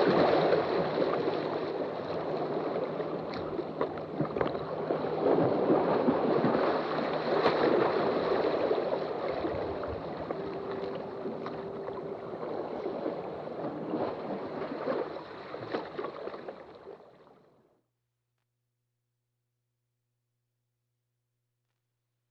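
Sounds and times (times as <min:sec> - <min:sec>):
lapping waves: 0:00.0 - 0:17.5.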